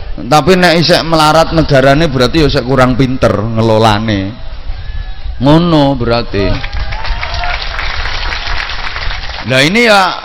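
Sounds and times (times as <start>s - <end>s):
speech: 0.2s - 4.4s, 5.4s - 6.7s, 9.5s - 10.2s
audience applause during a talk by an Indonesian preacher: 6.5s - 10.2s.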